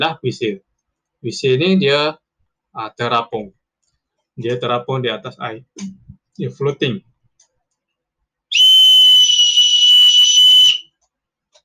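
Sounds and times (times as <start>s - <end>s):
speech: 0.0s - 2.2s, 2.8s - 3.6s, 4.4s - 7.1s
safety whistle blast: 8.5s - 10.8s.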